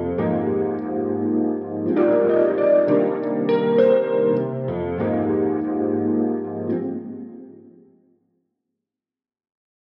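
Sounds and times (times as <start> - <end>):
electric grand piano in stereo: 0.0 - 7.8.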